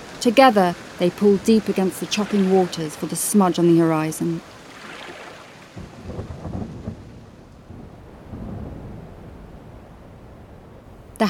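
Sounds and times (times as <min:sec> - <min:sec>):
rain hiss: 0:00.0 - 0:11.2
speech: 0:00.2 - 0:04.5
rolling thunder: 0:05.8 - 0:11.2.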